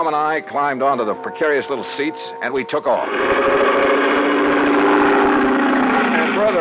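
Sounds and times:
speech: 0.0 - 4.6
airboat motor driving an airplane-type propeller: 3.0 - 6.5.

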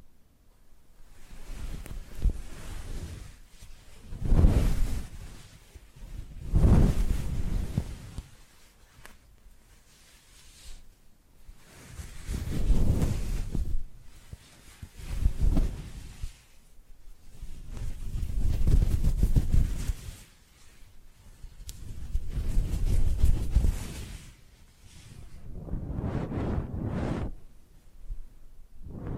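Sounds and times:
face brushing strokes: 1.1 - 27.4.

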